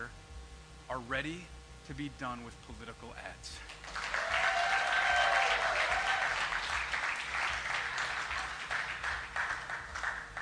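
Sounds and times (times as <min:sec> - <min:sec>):
speech: 0:00.9 - 0:03.7
audience applause: 0:03.7 - 0:10.4.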